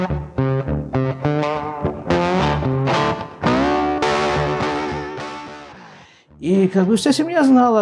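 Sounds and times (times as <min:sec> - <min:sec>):
loud rock music with distorted electric guitar: 0:00.0 - 0:06.1
speech: 0:06.7 - 0:07.7.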